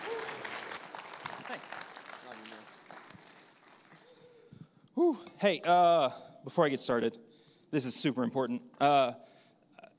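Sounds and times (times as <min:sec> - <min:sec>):
audience applause at a church service welcoming a pastor: 0:00.0 - 0:04.2
speech: 0:05.0 - 0:09.3.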